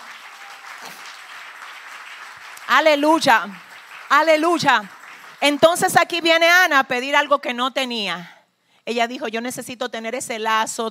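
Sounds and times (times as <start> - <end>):
audience applauding: 0.0 - 6.0
speech: 2.7 - 10.8.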